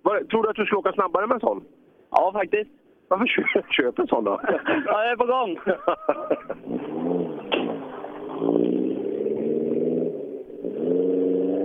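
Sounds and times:
speech: 0.1 - 7.3
laughter: 3.3 - 6.7
Group F rally car passing by: 6.2 - 11.6.

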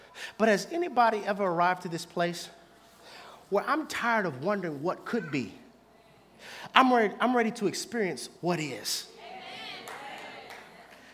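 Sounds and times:
speech: 0.4 - 2.6, 3.5 - 5.6, 6.4 - 9.1
audience hand claps: 9.8 - 11.1.

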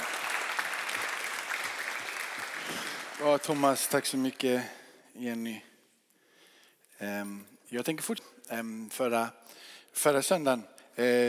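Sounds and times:
audience applause: 0.0 - 4.4
speech: 3.2 - 5.7, 7.0 - 11.2.

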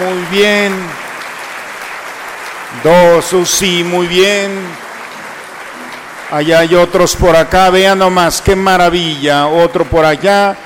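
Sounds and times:
speech: 0.0 - 1.0, 2.7 - 4.8, 6.3 - 10.6
audience applause: 0.0 - 10.6.

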